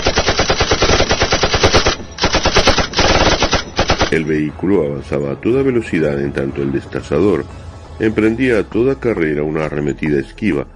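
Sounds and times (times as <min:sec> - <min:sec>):
machine gun firing: 0:00.0 - 0:04.2
speech: 0:04.1 - 0:10.7.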